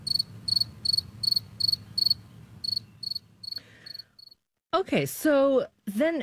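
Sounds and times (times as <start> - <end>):
modern-day cricket chirping: 0.0 - 4.4
speech: 4.8 - 6.2.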